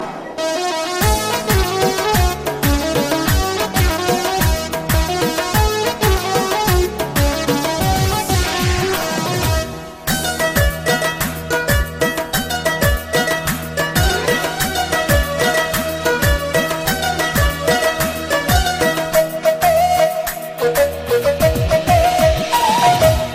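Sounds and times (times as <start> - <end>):
Pashto instrumental music: 0.0 - 23.3.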